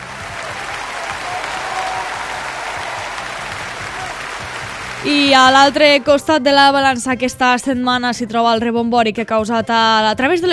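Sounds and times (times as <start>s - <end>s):
crowd applause: 0.0s - 6.3s
speech: 5.0s - 10.5s.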